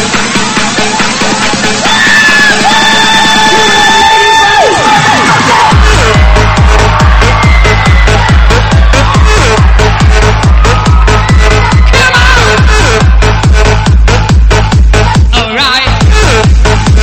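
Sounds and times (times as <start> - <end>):
audience screaming and cheering: 0.0 - 17.0
low rhythmic thumping: 5.7 - 15.4.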